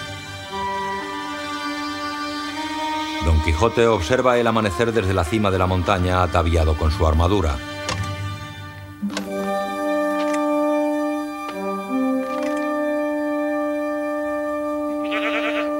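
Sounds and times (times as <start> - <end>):
steady tonal background: 0.0 - 15.1
speech: 3.2 - 7.8
goat bleating on a mountain at dawn: 15.0 - 15.7.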